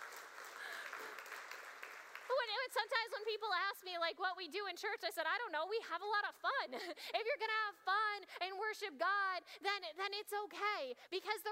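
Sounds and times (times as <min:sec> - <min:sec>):
audience clapping: 0:00.0 - 0:03.4
speech: 0:02.7 - 0:11.5.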